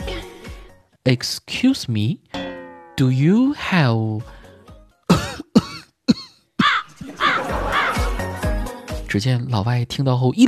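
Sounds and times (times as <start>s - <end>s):
speech: 1.0s - 2.2s, 3.0s - 4.4s, 9.1s - 10.4s
person imitating coughing: 5.1s - 7.0s
laughter: 6.9s - 8.8s.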